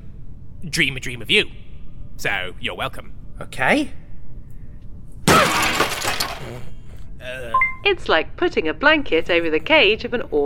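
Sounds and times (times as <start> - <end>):
speech: 0.6 - 1.6, 2.2 - 4.0, 6.4 - 10.4
table breaking with a splintering crash: 5.3 - 6.6.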